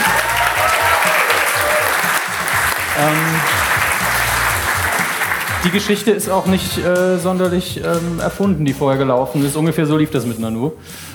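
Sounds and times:
audience applause: 0.0 - 6.2
speech: 3.0 - 3.6, 5.6 - 11.1.

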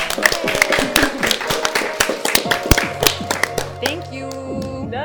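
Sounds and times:
crowd hand clapping: 0.0 - 4.9.

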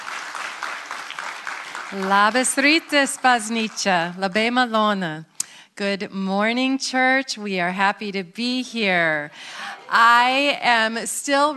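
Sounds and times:
audience applause welcoming guest speakers: 0.0 - 4.2
speech: 1.9 - 11.5.

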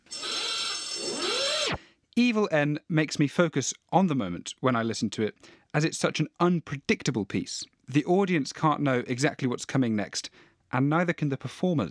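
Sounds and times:
harsh buzzing alarm sound effect with upward sweeping tone: 0.0 - 1.8
speech: 2.2 - 11.8.

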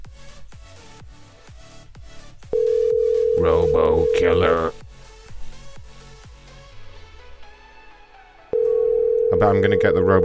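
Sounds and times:
telephone line tone: 2.6 - 4.7, 8.6 - 10.2
speech: 3.4 - 4.8, 9.4 - 10.2.

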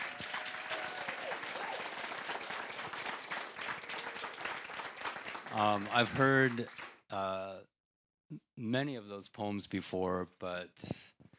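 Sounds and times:
audience applause: 0.0 - 7.0
speech: 5.5 - 7.7, 8.3 - 11.0.

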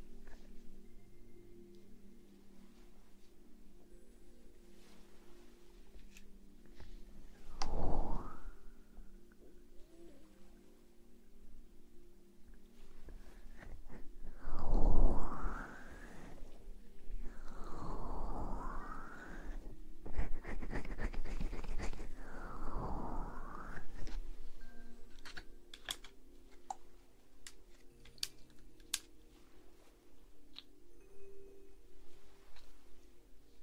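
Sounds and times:
low steady hum: 0.0 - 33.6
ear blowing, breathy gusts of air: 7.0 - 9.2, 13.2 - 20.3, 22.0 - 24.9.

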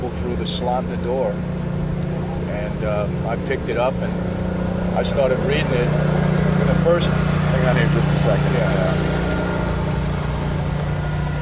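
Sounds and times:
lawn mower engine running nearby: 0.0 - 11.4
speech: 0.1 - 1.6, 2.5 - 4.4, 5.0 - 9.3.

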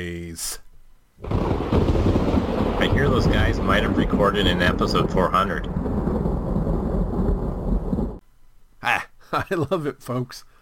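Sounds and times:
speech: 0.0 - 0.6, 3.0 - 5.9, 8.8 - 10.5
thunderclap sound effect: 1.2 - 8.2.

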